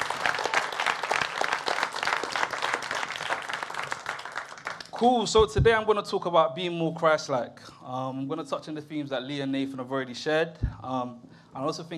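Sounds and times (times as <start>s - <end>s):
audience applause for youth ministry: 0.0s - 5.3s
speech: 5.0s - 11.9s.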